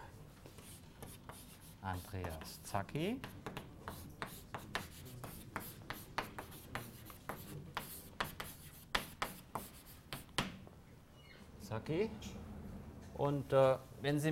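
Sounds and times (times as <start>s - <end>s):
handwriting scratching strokes during a lecture: 0.4s - 10.5s
speech: 1.8s - 3.5s, 11.8s - 12.4s, 13.2s - 14.3s.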